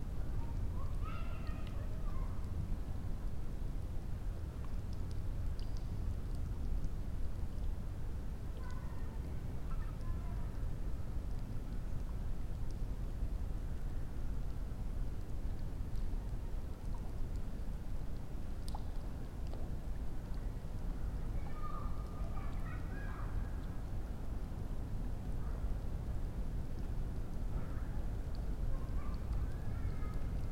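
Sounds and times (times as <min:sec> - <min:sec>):
raindrops: 0:00.0 - 0:30.5
child: 0:00.3 - 0:02.6, 0:08.5 - 0:10.7, 0:21.2 - 0:23.8, 0:28.6 - 0:30.5.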